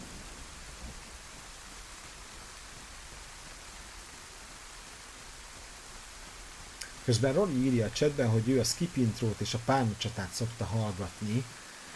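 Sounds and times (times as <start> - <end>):
faint low rumble: 0.0 - 11.6
heavy rain in a thunderstorm: 0.0 - 11.9
speech: 7.1 - 11.6.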